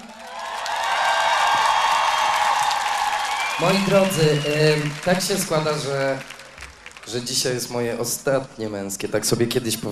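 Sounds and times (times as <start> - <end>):
voices cheering: 0.0 - 6.3
audience applauding: 0.0 - 7.8
speech: 3.6 - 6.4, 7.1 - 9.9.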